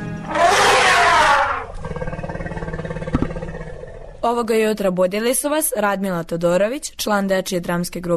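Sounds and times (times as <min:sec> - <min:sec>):
elephant trumpeting: 0:00.2 - 0:04.2
elephant rumbling: 0:01.2 - 0:04.6
speech: 0:04.2 - 0:08.1.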